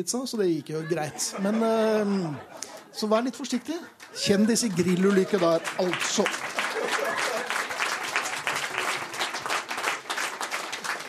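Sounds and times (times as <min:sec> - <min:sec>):
speech: 0:00.0 - 0:07.0
laughter: 0:00.7 - 0:09.1
audience applause: 0:04.0 - 0:11.0.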